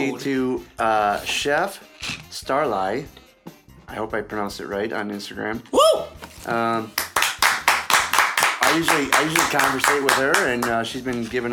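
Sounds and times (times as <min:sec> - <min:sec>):
speech: 0:00.0 - 0:03.2, 0:03.9 - 0:07.0, 0:08.7 - 0:11.5
hands clapping: 0:06.2 - 0:11.4.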